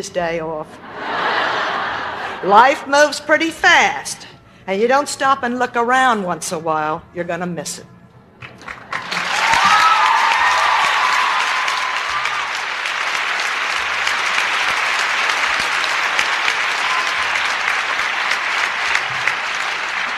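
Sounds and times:
speech: 0.0 - 1.2, 2.4 - 7.9
laughter: 0.8 - 2.8, 18.9 - 20.1
audience applause: 8.5 - 20.1.

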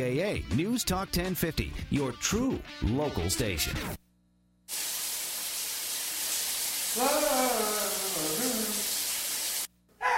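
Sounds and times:
speech: 0.0 - 4.0
running shower water: 4.7 - 9.7.

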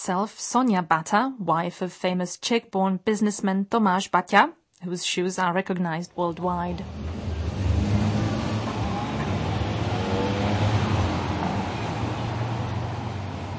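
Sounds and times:
speech: 0.0 - 7.3
city traffic passing in the Annex District of Toronto: 6.2 - 13.5.

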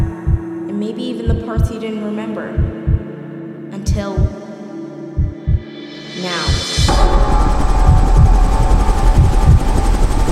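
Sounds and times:
speech: 0.8 - 3.0, 3.9 - 4.4
helicopter rotor thrumming: 6.5 - 10.2.

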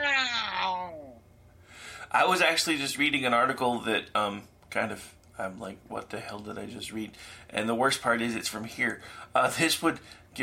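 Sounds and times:
person imitating a cat's loud yowl: 0.0 - 1.2
speech: 2.1 - 10.4.

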